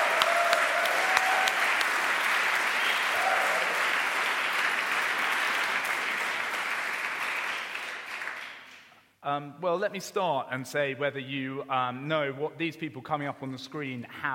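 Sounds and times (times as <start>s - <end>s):
whistles and cheers: 0.0s - 1.9s, 2.7s - 3.9s
crowd applauding musicians: 0.0s - 8.8s
speech: 9.3s - 14.3s.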